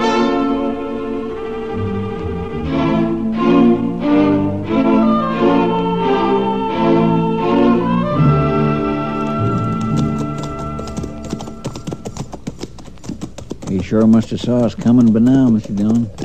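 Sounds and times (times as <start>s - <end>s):
orchestral music: 0.0s - 11.6s
horse hooves clip-clopping: 8.3s - 16.2s
speech: 13.9s - 16.2s.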